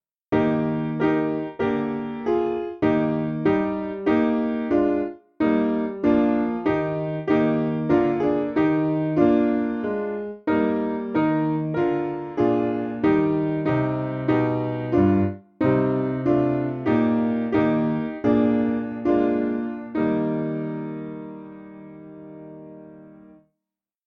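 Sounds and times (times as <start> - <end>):
simple piano evening prayer hymn backing music: 0.3 - 23.5.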